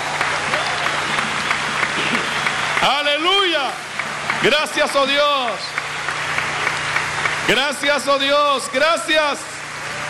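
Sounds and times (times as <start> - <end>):
loud audience applause: 0.0 - 10.0
speech: 2.8 - 5.8, 7.5 - 9.5.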